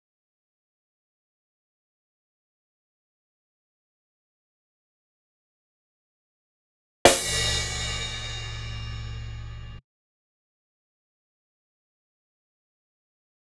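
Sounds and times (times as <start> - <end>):
drum cymbal: 7.1 - 9.8.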